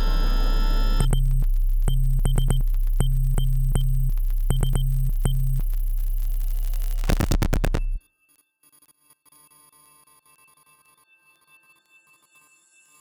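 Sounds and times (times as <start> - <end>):
morse code beeps: 0.1 - 8.0.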